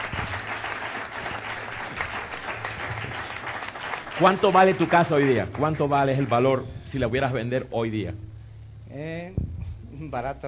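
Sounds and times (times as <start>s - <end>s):
audience applause: 0.0s - 6.4s
speech: 4.2s - 8.2s, 8.9s - 9.4s, 10.0s - 10.4s.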